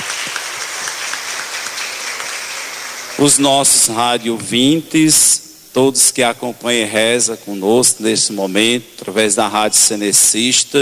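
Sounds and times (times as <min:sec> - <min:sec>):
audience applause: 0:00.0 - 0:03.4
speech: 0:03.2 - 0:10.7.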